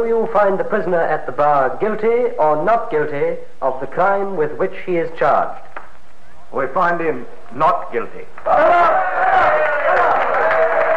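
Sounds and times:
speech: 0:00.0 - 0:05.7, 0:06.5 - 0:09.5
crowd cheering in a courtroom: 0:08.4 - 0:10.9.

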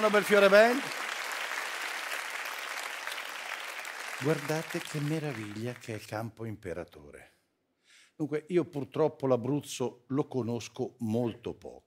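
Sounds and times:
speech: 0:00.0 - 0:01.0, 0:04.2 - 0:07.3, 0:08.2 - 0:11.8
audience applause: 0:00.0 - 0:06.1.

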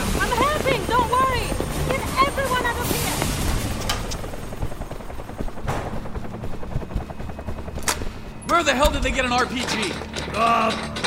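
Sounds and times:
helicopter: 0:00.0 - 0:11.0
speech: 0:08.6 - 0:11.0.

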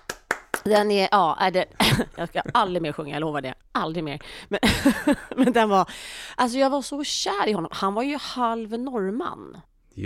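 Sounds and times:
hand claps: 0:00.0 - 0:00.8
speech: 0:00.7 - 0:10.0.

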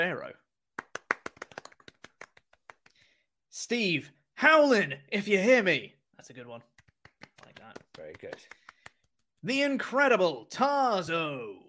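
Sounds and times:
speech: 0:00.1 - 0:00.5, 0:03.6 - 0:06.7, 0:07.6 - 0:08.6, 0:09.4 - 0:11.6
hand clapping: 0:00.7 - 0:03.2, 0:06.6 - 0:09.5.

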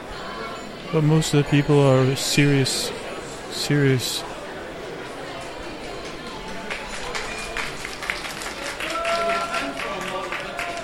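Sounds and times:
speech: 0:00.9 - 0:04.3
audience applause for an art model: 0:05.4 - 0:10.8.

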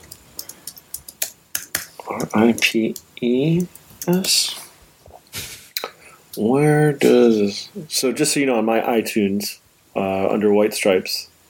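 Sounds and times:
typing on a computer keyboard: 0:00.0 - 0:04.3
speech: 0:02.1 - 0:04.6, 0:06.4 - 0:11.3.

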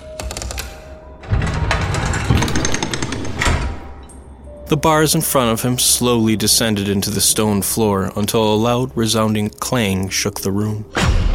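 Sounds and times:
gears churning: 0:01.2 - 0:04.2
speech: 0:04.7 - 0:11.1.

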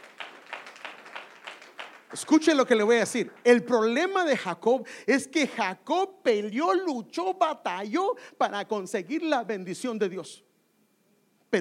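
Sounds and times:
audience clapping: 0:00.0 - 0:04.2
speech: 0:02.1 - 0:10.5.

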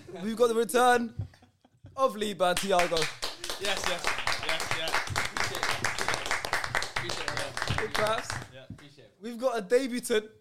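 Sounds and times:
speech: 0:00.1 - 0:01.2, 0:02.0 - 0:04.2, 0:07.8 - 0:10.3
audience clapping: 0:02.5 - 0:09.0.

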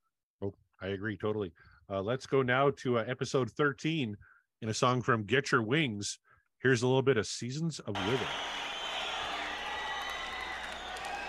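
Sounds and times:
speech: 0:00.4 - 0:08.6
audience cheering at the opening of a studio rock song recording: 0:08.0 - 0:11.2
faint scattered clapping: 0:08.0 - 0:11.2.

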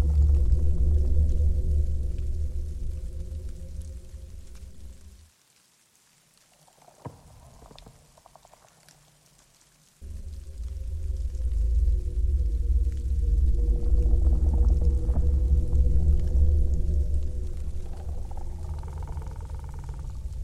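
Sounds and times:
deep steady rumble of dark winter forest ambience: 0:00.0 - 0:05.2, 0:10.0 - 0:20.4
layered low droning tones: 0:00.0 - 0:05.2, 0:10.0 - 0:20.4.

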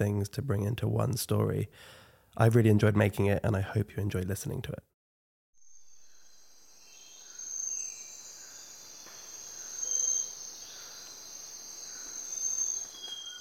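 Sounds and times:
speech: 0:00.0 - 0:04.9
insects chirping in a tropical forest in Ecuador: 0:05.6 - 0:13.3.

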